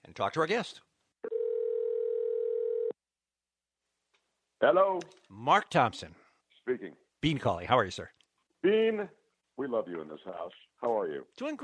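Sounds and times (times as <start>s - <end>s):
speech: 0.2s - 0.9s, 4.6s - 11.6s
telephone dial tone while dialing a call: 1.2s - 3.0s.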